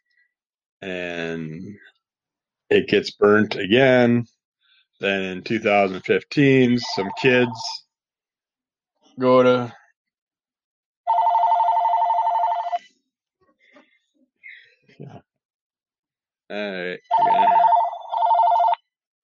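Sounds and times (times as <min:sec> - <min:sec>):
speech: 0:00.8 - 0:02.0, 0:02.7 - 0:04.4, 0:05.0 - 0:07.8, 0:09.2 - 0:09.8, 0:15.0 - 0:15.2, 0:16.5 - 0:17.6
telephone bell ringing: 0:11.1 - 0:12.8, 0:17.1 - 0:18.8.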